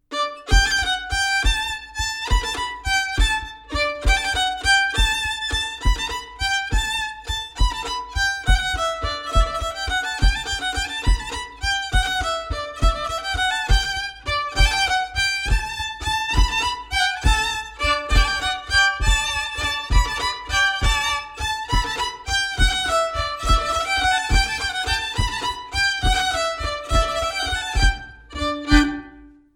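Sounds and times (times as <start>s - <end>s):
bourree dance tune: 0.1s - 29.5s.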